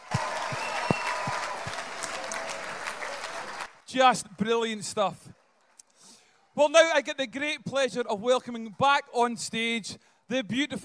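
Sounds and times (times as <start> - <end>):
audience applause for a pipe and drum band: 0.0 - 3.9
speech: 3.9 - 5.3, 6.6 - 10.8.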